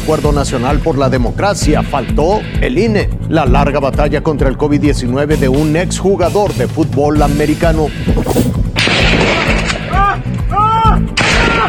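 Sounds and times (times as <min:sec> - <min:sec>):
speech: 0:00.0 - 0:08.6
gunfire from a shootout video: 0:08.3 - 0:10.0, 0:11.2 - 0:11.6.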